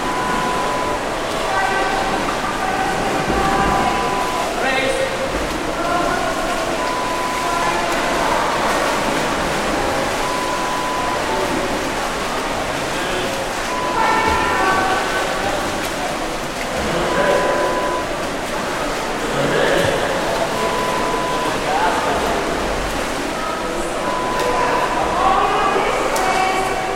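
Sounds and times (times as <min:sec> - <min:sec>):
swimming pool ambience: 0:00.0 - 0:26.9.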